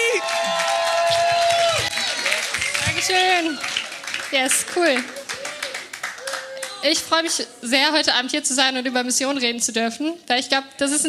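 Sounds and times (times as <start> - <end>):
audience applause and cheering: 0.0 - 7.3
speech: 4.3 - 5.2, 6.8 - 11.0.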